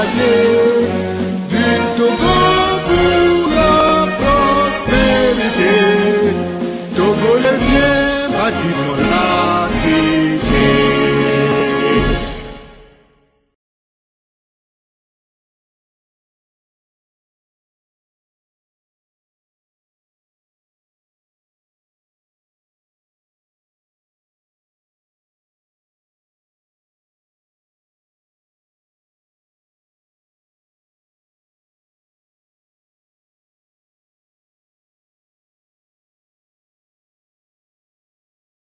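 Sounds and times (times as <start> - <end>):
a national anthem: 0.0 - 13.1.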